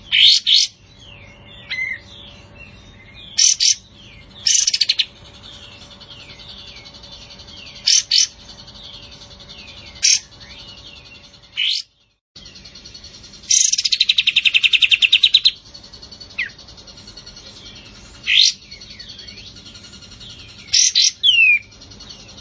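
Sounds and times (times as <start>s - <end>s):
Cream-vented Bulbul uttering brief loud scratchy bursts: 3.4s - 11.9s, 13.2s - 22.4s.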